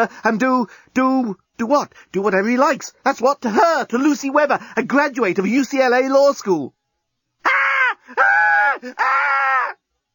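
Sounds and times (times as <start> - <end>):
speech: 0.0 - 6.8, 7.4 - 9.4
woman screaming: 7.4 - 9.8.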